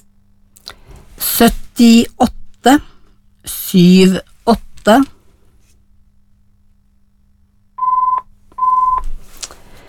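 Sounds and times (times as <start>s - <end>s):
speech: 1.4s - 5.1s
telephone tones: 7.8s - 9.1s.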